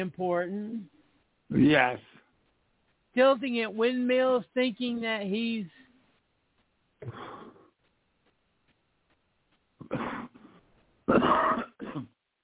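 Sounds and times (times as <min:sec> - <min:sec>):
speech: 0:00.0 - 0:02.2, 0:03.2 - 0:05.8, 0:07.0 - 0:07.3, 0:11.1 - 0:12.1
person coughing from smoke: 0:07.0 - 0:07.6, 0:09.8 - 0:12.2.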